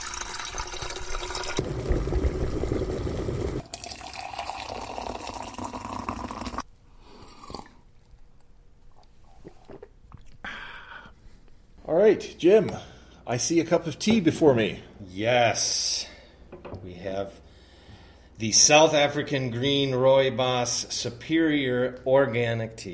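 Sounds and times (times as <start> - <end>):
kettle being filled with water: 0.0 - 6.6
speech: 12.1 - 16.1, 17.0 - 17.4, 18.4 - 22.9.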